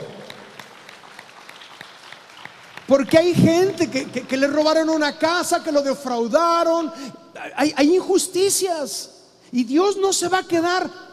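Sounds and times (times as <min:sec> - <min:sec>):
audience applause: 0:00.0 - 0:04.6
speech: 0:02.9 - 0:11.1.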